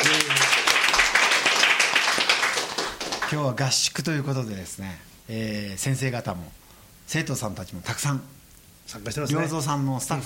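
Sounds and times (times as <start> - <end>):
live audience applause and cheering: 0.0 - 3.4
speech: 3.3 - 10.2.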